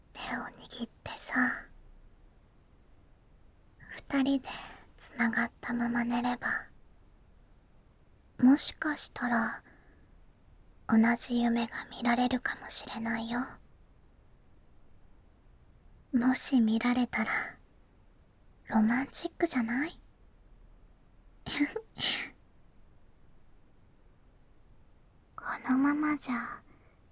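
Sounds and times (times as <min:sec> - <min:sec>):
ASMR whispering: 0:00.1 - 0:01.8, 0:03.8 - 0:06.8, 0:08.4 - 0:09.7, 0:10.9 - 0:13.7, 0:16.2 - 0:17.6, 0:18.7 - 0:20.0, 0:25.4 - 0:26.9.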